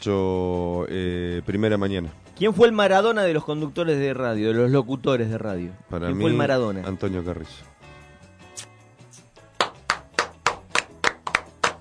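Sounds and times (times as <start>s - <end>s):
speech: 0.0s - 7.8s
hand claps: 9.2s - 11.7s.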